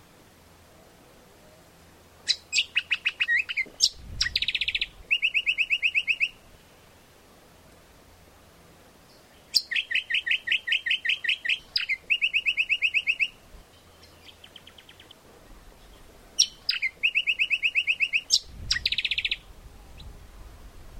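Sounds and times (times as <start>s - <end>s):
Lichmera indistincta calling: 2.2s - 6.5s, 9.1s - 20.1s.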